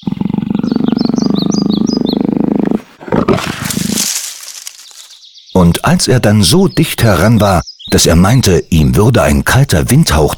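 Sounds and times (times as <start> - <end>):
wild animals whimpering: 0.0 - 4.1
wild animals growling: 0.0 - 4.8
speech: 5.8 - 10.3.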